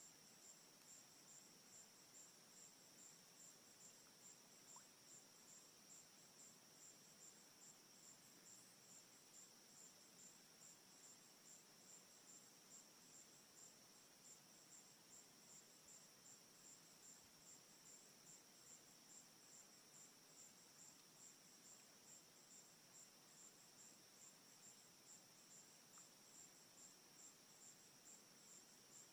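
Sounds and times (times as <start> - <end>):
crickets trilling at a pond at night: 0.0 - 29.1
soft hiss: 0.0 - 29.1.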